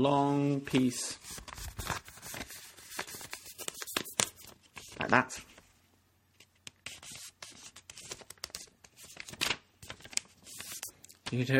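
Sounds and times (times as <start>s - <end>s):
speech: 0.0s - 2.0s, 5.0s - 5.5s, 11.3s - 11.5s
sheet of paper being folded lengthwise into a long strip: 0.7s - 5.6s, 6.7s - 11.5s.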